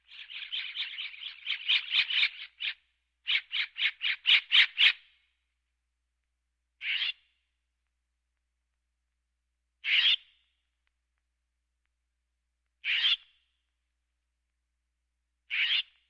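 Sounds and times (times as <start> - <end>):
birds: 0.0 - 5.3, 6.8 - 7.4, 9.8 - 10.6, 12.8 - 13.6, 15.5 - 16.0.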